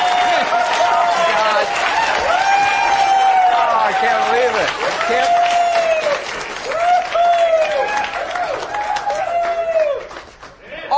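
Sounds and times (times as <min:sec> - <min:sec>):
whoops and cheers: 0:00.0 - 0:10.2
audience applause: 0:00.0 - 0:10.9.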